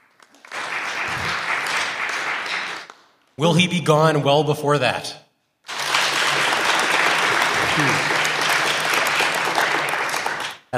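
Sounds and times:
round of applause: 0:00.0 - 0:03.2, 0:05.6 - 0:10.7
speech: 0:03.4 - 0:05.2, 0:07.8 - 0:08.1.

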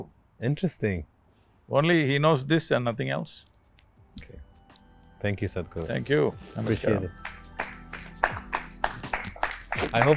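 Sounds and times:
speech: 0:00.0 - 0:01.1, 0:01.7 - 0:03.5, 0:04.2 - 0:04.4, 0:05.2 - 0:07.3, 0:09.9 - 0:10.1
camera crew clapping: 0:07.0 - 0:10.1.

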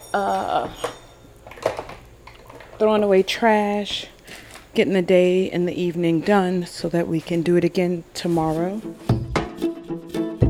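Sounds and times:
dishes clinking and clattering being washed at a tea shop: 0:00.0 - 0:02.8
speech: 0:00.1 - 0:01.0, 0:02.8 - 0:04.1, 0:04.7 - 0:09.1.

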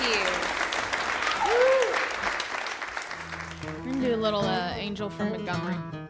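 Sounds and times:
audience applause for a performer: 0:00.0 - 0:04.6
whoop or cheer: 0:01.2 - 0:02.2
speech: 0:04.2 - 0:06.0.

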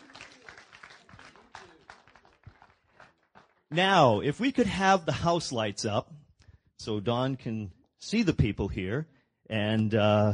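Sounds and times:
crowd applause: 0:00.0 - 0:04.1
speech: 0:03.7 - 0:06.2, 0:06.8 - 0:10.3.

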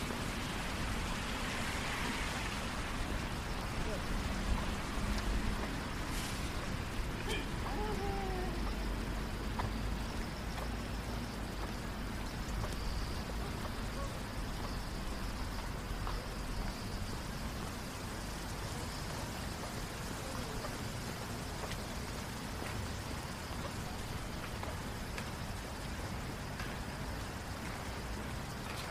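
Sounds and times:
cars downtown on a rainy night: 0:00.0 - 0:25.6
light rain: 0:00.0 - 0:28.8
murmurs of people: 0:07.2 - 0:08.9.

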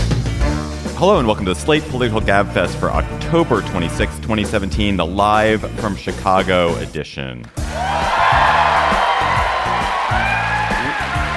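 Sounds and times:
speech: 0:01.0 - 0:08.0
large rowdy theater crowd cheering and whooping: 0:07.6 - 0:11.3.

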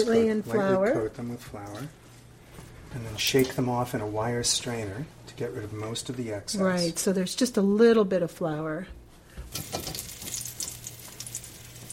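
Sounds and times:
speech: 0:00.0 - 0:02.0, 0:02.9 - 0:09.9
lightly flour-coated food frying fast in hot oil: 0:09.5 - 0:11.9.

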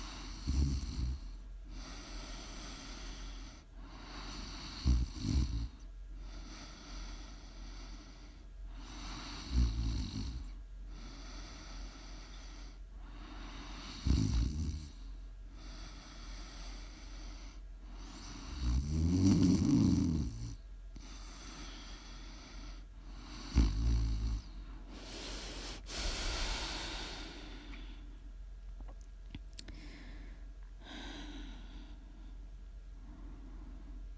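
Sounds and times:
deep rumbling snores: 0:00.0 - 0:05.8, 0:08.8 - 0:12.6, 0:13.4 - 0:15.0, 0:18.0 - 0:27.8.

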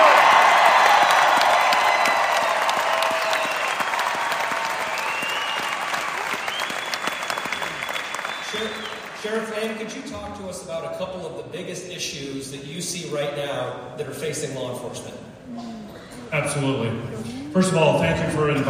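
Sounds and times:
cheers: 0:00.0 - 0:09.3
audience applauding a sheriff walking on stage at a political panel event: 0:00.0 - 0:10.0
speech: 0:10.6 - 0:15.7, 0:16.3 - 0:18.6.

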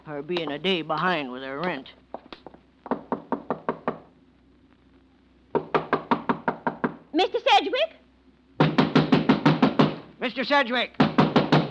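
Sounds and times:
speech: 0:00.1 - 0:02.0, 0:07.2 - 0:08.0, 0:10.2 - 0:11.0
knuckles knocking on a door: 0:02.8 - 0:04.1, 0:05.5 - 0:07.0, 0:08.6 - 0:10.0, 0:11.0 - 0:11.6.

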